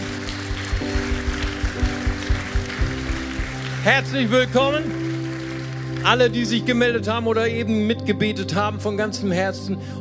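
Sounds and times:
steady pulsing beat: 0:00.0 - 0:03.7
audience applause: 0:00.0 - 0:06.8
speech: 0:03.9 - 0:05.0, 0:06.0 - 0:09.9.

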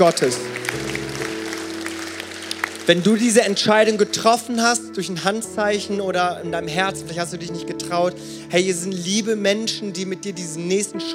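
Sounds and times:
speech: 0:00.0 - 0:00.6, 0:02.9 - 0:11.1
crowd clapping in a large room: 0:00.0 - 0:04.6.

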